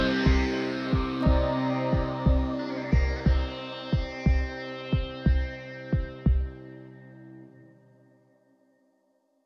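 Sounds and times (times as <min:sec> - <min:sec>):
guitar-like sound: 0:00.0 - 0:07.0.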